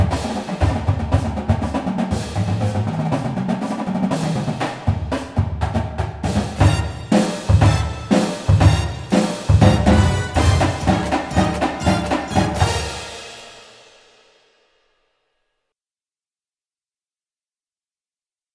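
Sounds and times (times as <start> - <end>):
full drumline playing: 0.0 - 13.9
music: 0.0 - 15.7.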